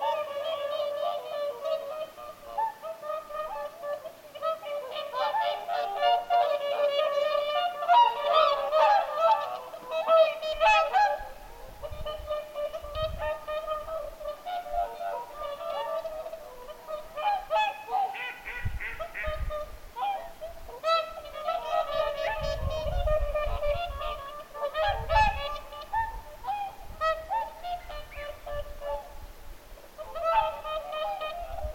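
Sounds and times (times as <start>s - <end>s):
whooper swans trumpeting: 0.0s - 31.7s.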